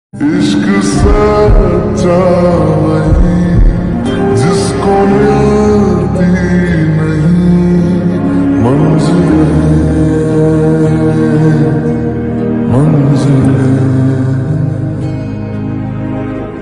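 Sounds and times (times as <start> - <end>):
slowed lo-fi song with reverb: 0.2 - 16.5.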